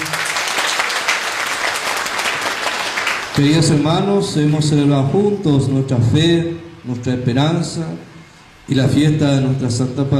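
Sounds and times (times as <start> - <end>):
audience applauding: 0.0 - 3.8
speech: 3.4 - 8.1, 8.7 - 10.1.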